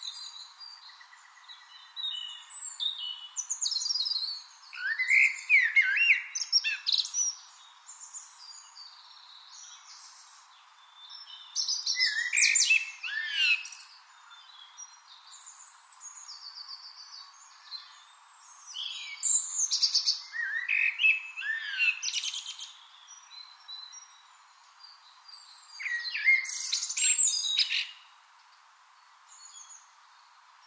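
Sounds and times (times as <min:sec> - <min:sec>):
Eurasian blackbird singing: 0:00.0 - 0:28.1
bird chorus: 0:00.0 - 0:30.6.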